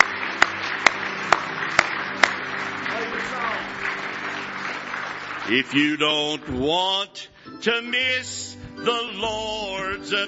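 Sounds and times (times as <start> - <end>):
audience applause and hand clapping: 0.0 - 6.9
speech: 5.5 - 10.2.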